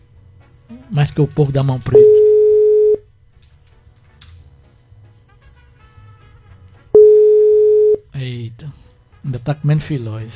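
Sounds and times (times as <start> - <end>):
speech: 0.8 - 2.2, 9.5 - 10.3
telephone busy signal on an outgoing call: 1.9 - 3.1, 7.0 - 8.1.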